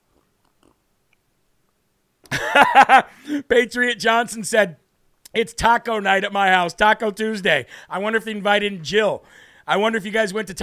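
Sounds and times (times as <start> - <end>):
slurping a drink from a cup: 0.0 - 0.9
speech: 2.6 - 10.6.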